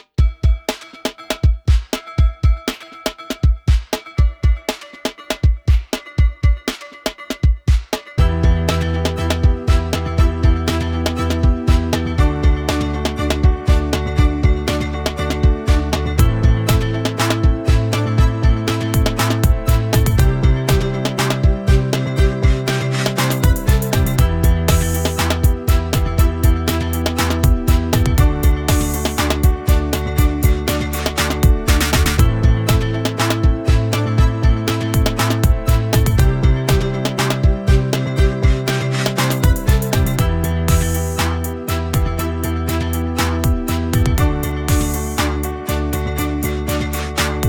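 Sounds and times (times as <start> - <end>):
backing track: 0.2 - 47.4.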